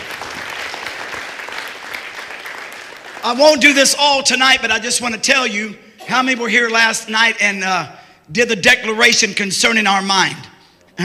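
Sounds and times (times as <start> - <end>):
audience clapping: 0.0 - 3.9
speech: 3.2 - 11.0.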